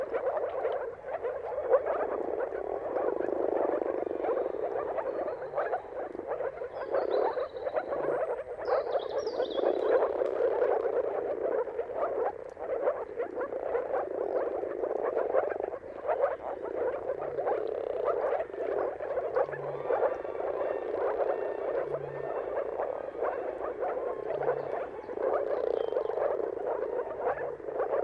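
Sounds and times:
moor frogs in a bubbling chorus: 0:00.0 - 0:28.0
high bird call: 0:19.5 - 0:26.2.

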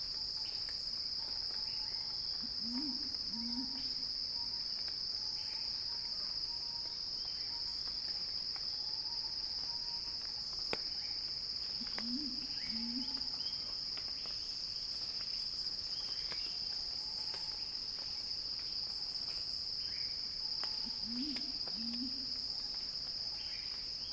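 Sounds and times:
cicadas droning: 0:00.0 - 0:24.1
low wavering call: 0:02.4 - 0:04.0, 0:12.0 - 0:13.2, 0:20.9 - 0:22.3.

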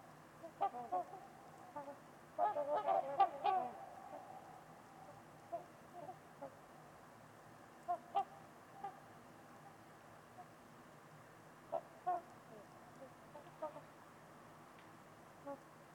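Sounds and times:
trumpeter swans honking: 0:00.4 - 0:06.6, 0:07.8 - 0:09.1, 0:11.7 - 0:14.0.

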